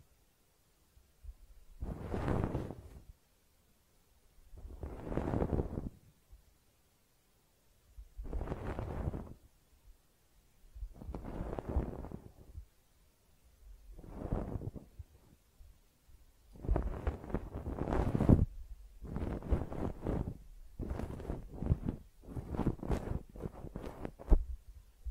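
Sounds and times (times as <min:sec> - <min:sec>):
close-up ear cleaning scrapes: 0:01.8 - 0:03.0, 0:04.6 - 0:06.0, 0:08.2 - 0:09.4, 0:11.0 - 0:12.4, 0:14.0 - 0:14.9, 0:16.6 - 0:24.4.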